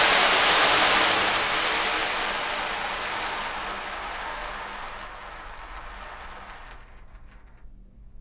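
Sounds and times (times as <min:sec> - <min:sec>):
rain: 0:00.0 - 0:04.9.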